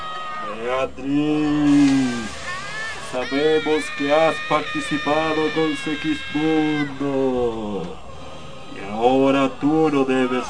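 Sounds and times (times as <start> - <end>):
voices wailing and moaning: 0.0 - 10.4
speech: 0.5 - 2.4, 3.1 - 8.0, 8.7 - 10.4.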